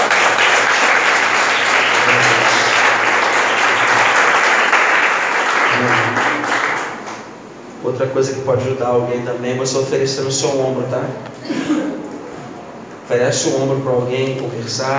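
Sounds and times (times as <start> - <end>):
audience applause: 0.0 - 7.4
speech: 8.0 - 11.4, 13.1 - 14.9.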